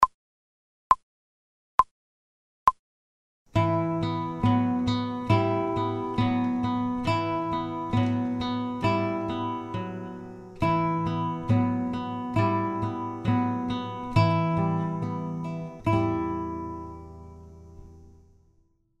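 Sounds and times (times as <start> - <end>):
fast guitar playing: 3.6 - 17.4.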